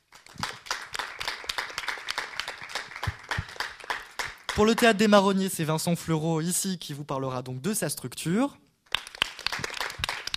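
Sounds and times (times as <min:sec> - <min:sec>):
audience applause: 0:00.1 - 0:04.8, 0:08.9 - 0:10.3
speech: 0:04.6 - 0:08.6.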